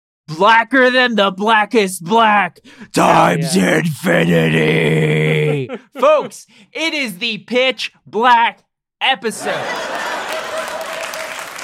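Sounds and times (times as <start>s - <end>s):
speech: 0.3s - 10.1s
laughter: 3.0s - 6.4s, 9.3s - 11.5s
crowd applause sound effect: 9.4s - 11.6s.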